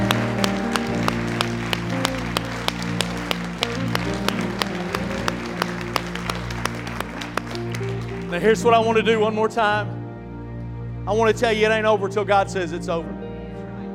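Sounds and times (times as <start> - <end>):
audience clapping: 0.0 - 9.0
droning musical accompaniment: 0.0 - 13.9
speech: 8.4 - 10.0, 11.1 - 13.2.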